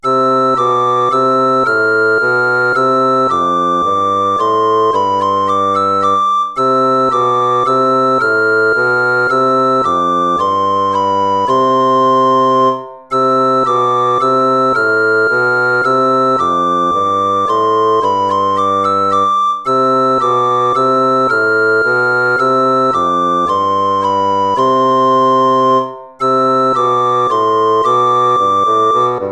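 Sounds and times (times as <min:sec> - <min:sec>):
minuet: 0:00.0 - 0:29.3.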